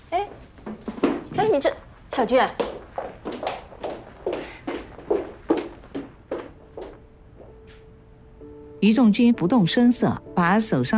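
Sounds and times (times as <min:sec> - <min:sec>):
footsteps of a person walking away: 0:00.1 - 0:07.9
speech: 0:01.4 - 0:02.7, 0:08.8 - 0:10.9.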